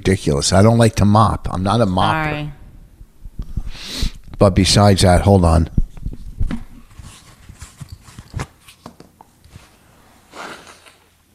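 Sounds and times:
speech: 0:00.1 - 0:02.6, 0:03.8 - 0:05.8
nose blowing: 0:03.6 - 0:04.2.

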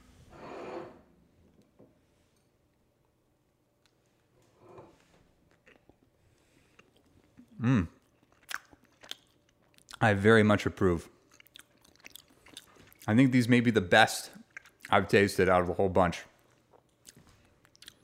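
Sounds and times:
chewing and crunching a cookie: 0:05.4 - 0:10.0, 0:11.2 - 0:13.2, 0:14.3 - 0:15.0, 0:16.4 - 0:18.0
speech: 0:10.0 - 0:11.2, 0:13.1 - 0:16.3.

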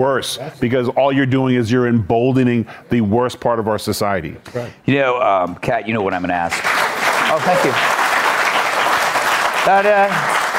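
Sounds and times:
speech: 0:00.0 - 0:08.0, 0:09.6 - 0:10.4
studio audience applause: 0:06.5 - 0:10.5.

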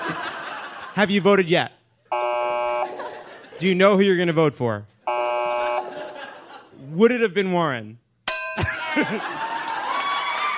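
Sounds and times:
laughter: 0:00.0 - 0:01.1, 0:02.8 - 0:03.8, 0:05.6 - 0:06.8, 0:08.6 - 0:10.4
speech: 0:01.0 - 0:01.8, 0:03.6 - 0:04.9, 0:06.9 - 0:08.0, 0:08.6 - 0:09.4
bright ding sound effect: 0:08.3 - 0:09.0.

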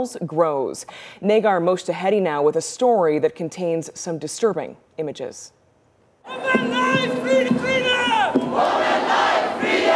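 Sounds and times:
speech: 0:00.0 - 0:05.6, 0:06.2 - 0:08.0
protest crowd chanting: 0:06.3 - 0:09.9.

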